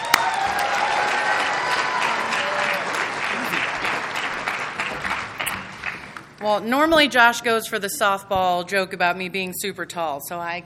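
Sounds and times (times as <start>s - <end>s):
audience applause: 0.0s - 6.4s
speech: 6.4s - 10.6s.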